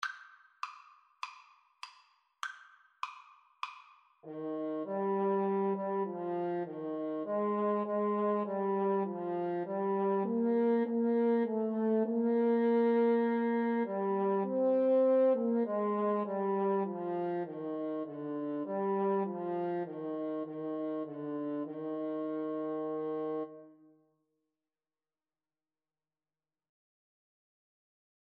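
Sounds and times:
French horn: 4.2s - 23.8s
trumpet: 4.2s - 23.8s.

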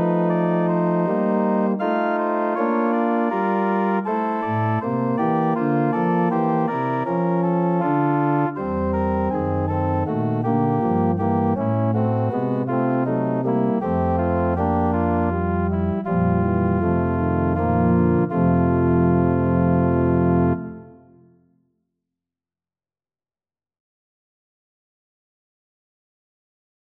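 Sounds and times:
organ music: 0.0s - 21.2s.

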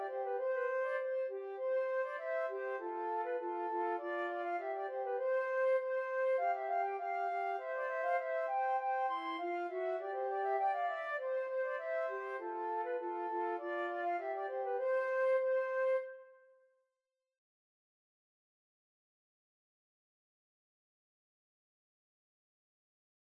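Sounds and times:
flute duet: 0.0s - 16.4s.

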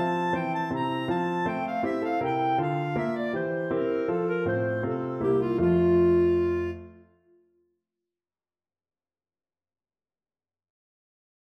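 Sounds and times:
clarinet: 0.0s - 7.4s.

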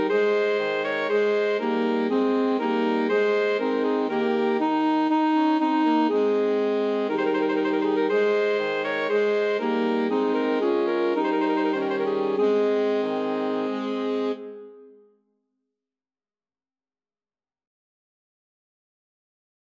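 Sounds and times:
alto saxophone quartet playing: 0.0s - 14.9s.

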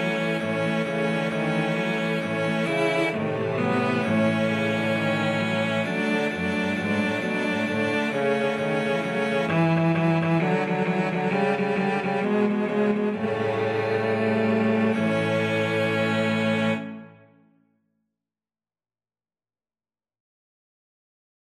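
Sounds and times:
cello quartet playing: 0.0s - 17.2s.

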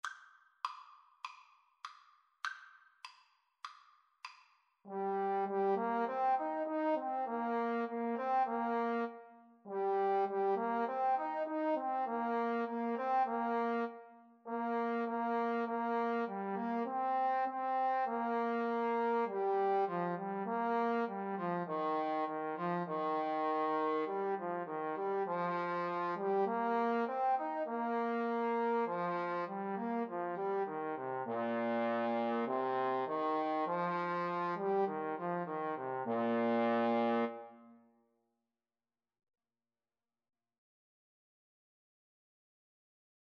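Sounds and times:
trombone duet: 4.9s - 37.5s.

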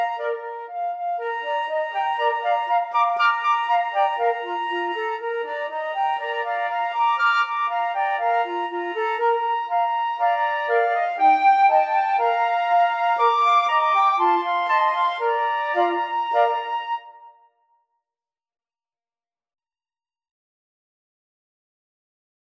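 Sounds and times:
flute quartet playing: 0.0s - 17.4s.

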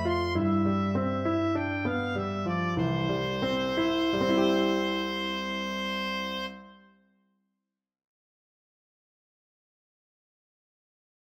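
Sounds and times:
oboe: 0.0s - 7.0s.

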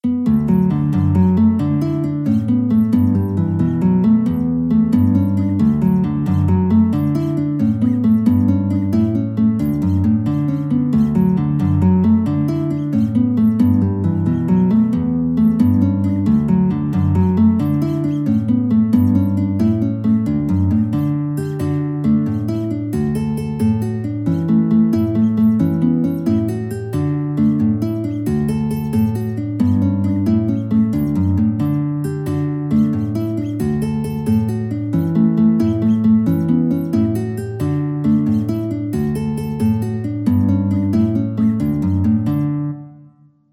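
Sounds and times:
guitar: 0.0s - 43.5s.

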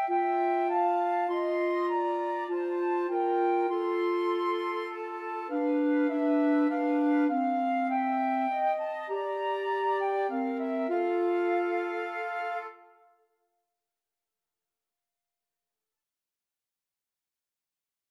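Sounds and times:
nocturne played on two flutes and clarinet: 0.0s - 13.0s.

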